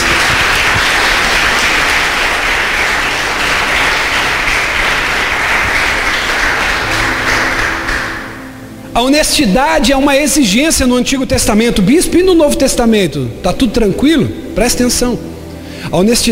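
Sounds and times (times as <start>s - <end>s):
audience applauding: 0.0s - 8.6s
speech: 9.0s - 15.3s, 15.9s - 16.3s.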